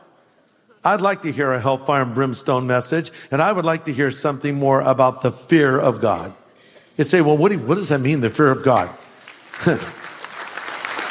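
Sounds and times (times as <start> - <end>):
speech: 0.8 - 6.4, 7.0 - 9.0, 9.6 - 10.0
sparse scattered audience clapping: 8.8 - 11.0.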